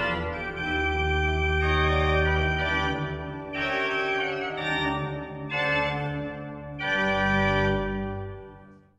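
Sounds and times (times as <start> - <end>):
echo improvisation on a choir loft organ built in 1775: 0.0 - 8.8.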